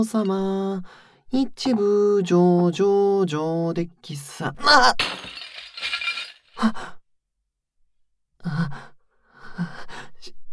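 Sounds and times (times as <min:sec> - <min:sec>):
speech: 0:00.0 - 0:05.4
dishes breaking: 0:05.0 - 0:06.6.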